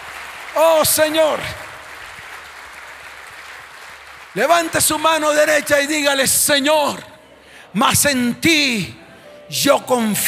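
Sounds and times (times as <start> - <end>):
audience applause: 0.0 - 5.4
speech: 0.6 - 1.6, 4.4 - 7.1, 7.7 - 10.2.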